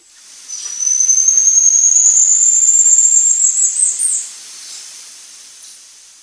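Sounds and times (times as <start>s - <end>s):
faint hiss: 0.0s - 6.2s
golden-headed lion tamarin whistle call: 0.5s - 4.8s.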